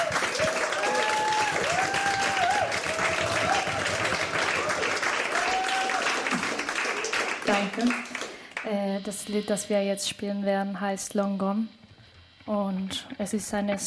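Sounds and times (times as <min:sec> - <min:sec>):
audience applause: 0:00.0 - 0:08.6
speech: 0:07.6 - 0:11.8, 0:12.5 - 0:13.8.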